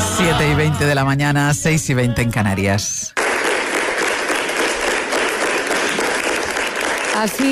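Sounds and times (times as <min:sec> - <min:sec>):
speech: 0:00.2 - 0:03.2, 0:07.2 - 0:07.5
large crowd applauding the mayor: 0:03.1 - 0:07.5.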